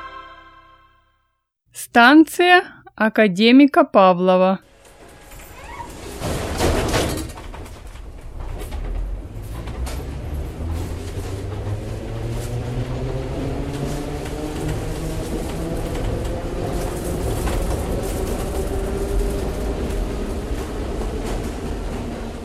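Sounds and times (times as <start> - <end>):
speech: 1.9 - 4.7
metro train doors: 4.7 - 22.4.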